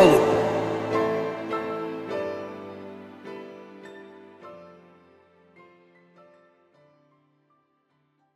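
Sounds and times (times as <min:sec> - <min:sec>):
super slowed funk with reverb: 0:00.0 - 0:03.3.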